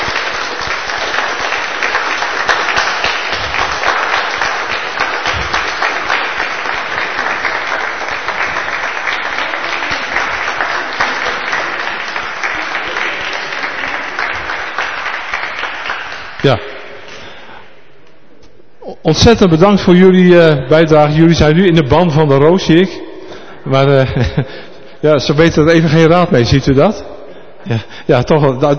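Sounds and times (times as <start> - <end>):
audience applause: 0.0 - 17.4
speech: 16.4 - 16.8, 19.0 - 23.0, 23.6 - 28.7.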